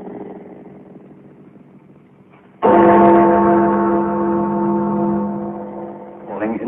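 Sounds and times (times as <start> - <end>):
Big Ben clock tower bell: 2.6 - 6.4.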